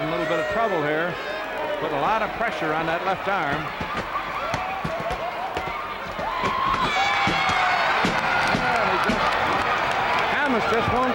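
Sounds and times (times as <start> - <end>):
wrestling crowd cheering: 0.0 - 11.1
speech: 0.5 - 4.2, 10.5 - 11.1.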